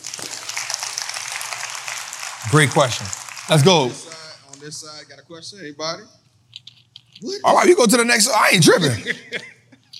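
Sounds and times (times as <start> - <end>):
audience clapping: 0.0 - 5.0
speech: 2.4 - 6.2, 7.2 - 9.5
laughter: 8.6 - 9.9.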